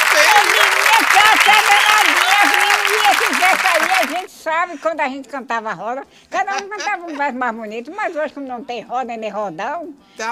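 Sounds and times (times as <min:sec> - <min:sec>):
audience applause: 0:00.0 - 0:04.3
speech: 0:04.4 - 0:10.3.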